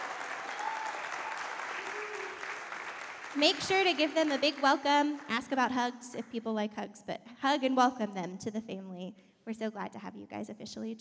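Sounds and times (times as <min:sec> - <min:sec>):
church congregation applauding: 0:00.0 - 0:05.5
speech: 0:03.4 - 0:10.9.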